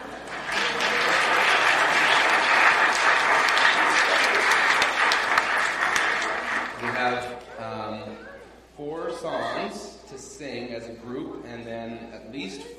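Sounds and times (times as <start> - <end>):
crowd clapping: 0.0 - 7.5.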